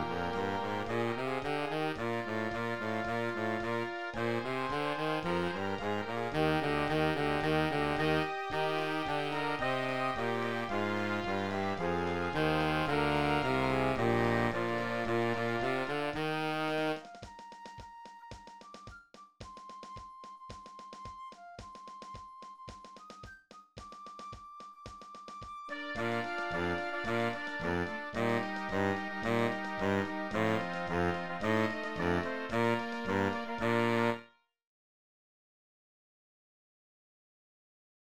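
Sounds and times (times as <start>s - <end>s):
E-flat tuba: 0.0s - 17.2s, 25.7s - 34.3s.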